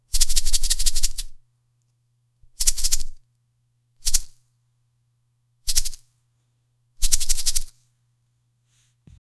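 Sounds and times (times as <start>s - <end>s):
hands shaking: 0.1s - 1.4s, 2.6s - 3.2s, 4.0s - 4.3s, 5.7s - 6.0s, 7.0s - 7.8s.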